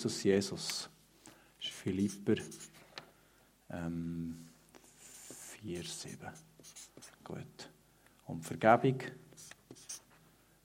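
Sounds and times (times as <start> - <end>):
speech: 0.0 - 0.9, 1.8 - 2.7, 3.7 - 4.5, 5.6 - 7.7, 8.3 - 9.2
pen writing by hand: 1.9 - 2.8, 4.8 - 7.2, 9.4 - 10.1.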